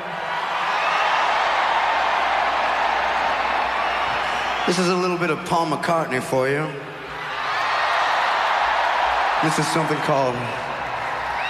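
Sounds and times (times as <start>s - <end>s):
concert crowd cheering: 0.0s - 11.4s
speech: 4.7s - 6.9s, 9.4s - 10.7s.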